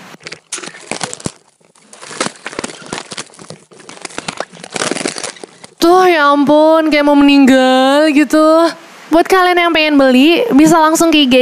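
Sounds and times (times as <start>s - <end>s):
crunching: 0.0s - 5.9s
package of macaroni snacks torn open: 0.2s - 5.8s
speech: 5.9s - 11.3s.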